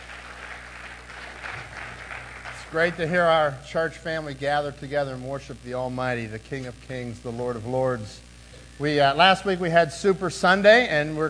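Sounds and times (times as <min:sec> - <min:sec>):
crowd clapping: 0:00.0 - 0:03.6
speech: 0:02.7 - 0:11.2.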